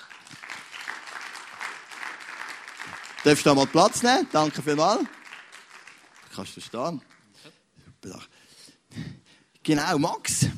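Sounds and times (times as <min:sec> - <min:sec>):
audience applause: 0:00.0 - 0:07.4
speech: 0:03.2 - 0:05.2, 0:06.4 - 0:07.6, 0:09.7 - 0:10.5.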